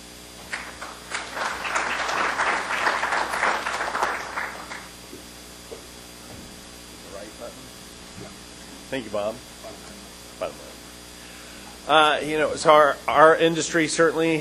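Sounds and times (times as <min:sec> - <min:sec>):
low electrical hum: 0:00.0 - 0:14.3
industry council meeting audience applause welcoming the president to the podium: 0:00.5 - 0:05.0
speech: 0:09.0 - 0:09.5, 0:10.4 - 0:10.7, 0:11.9 - 0:14.3.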